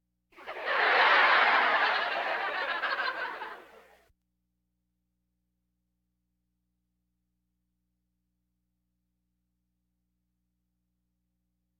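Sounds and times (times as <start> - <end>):
audience laughter: 0.4 - 4.0.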